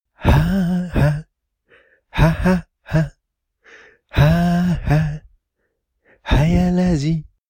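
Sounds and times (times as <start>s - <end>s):
person laughing: 0.2s - 1.2s, 2.2s - 3.1s, 4.2s - 5.3s.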